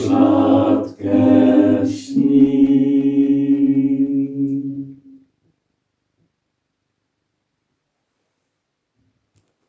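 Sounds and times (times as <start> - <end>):
vocal ensemble singing: 0.0 - 5.3.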